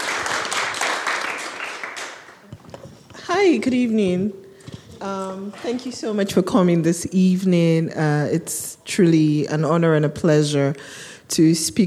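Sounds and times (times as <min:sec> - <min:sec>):
audience applause: 0:00.0 - 0:02.4
speech: 0:03.4 - 0:04.4, 0:05.0 - 0:11.8.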